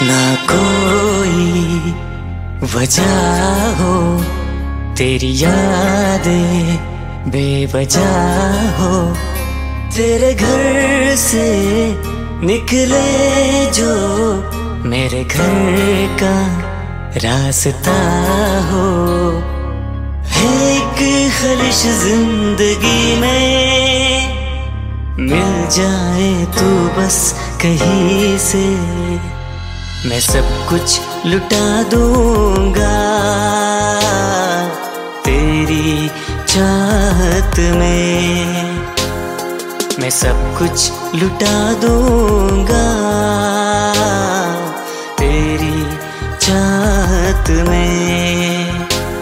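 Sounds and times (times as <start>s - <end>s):
sad love song: 0.0s - 49.1s.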